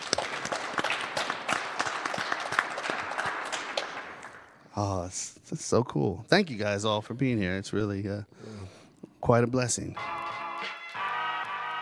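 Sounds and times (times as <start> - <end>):
studio audience applause: 0.0 - 4.5, 11.0 - 11.8
speech: 4.8 - 8.5, 9.2 - 10.2.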